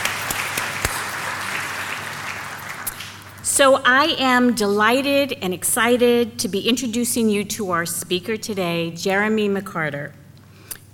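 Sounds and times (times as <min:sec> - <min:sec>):
crowd applauding: 0:00.0 - 0:03.3
speech: 0:03.6 - 0:10.2.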